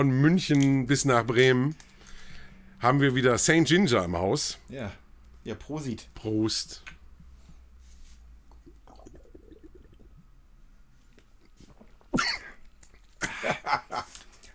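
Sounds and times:
speech: 0.0 - 1.9, 2.8 - 7.0
person coughing after drink went down wrong: 12.2 - 12.6
laughter: 13.2 - 14.2.

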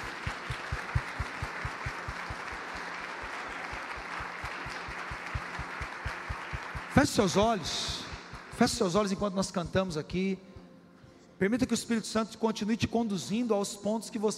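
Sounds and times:
audience applauding: 0.0 - 9.2
speech: 7.0 - 8.0, 8.6 - 10.5, 11.4 - 14.3.

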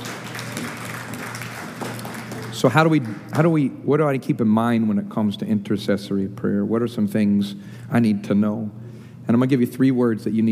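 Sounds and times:
audience clapping: 0.0 - 3.5
speech: 2.6 - 10.5.

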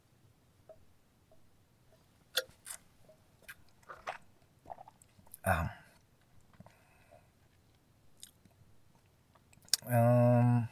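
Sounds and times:
person sipping coffee: 3.5 - 7.1.

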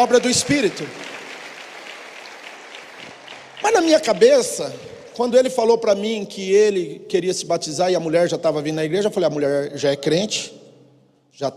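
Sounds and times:
speech: 0.0 - 1.2, 3.6 - 10.6, 11.4 - 11.5
audience applause: 0.0 - 5.5.

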